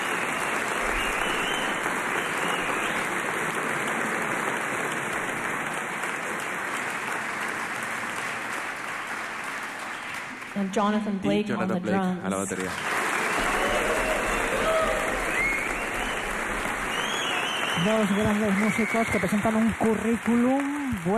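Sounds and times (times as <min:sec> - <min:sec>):
audience applause for a musician: 0:00.0 - 0:10.7, 0:12.4 - 0:21.1
speech: 0:10.6 - 0:13.0, 0:17.8 - 0:21.1.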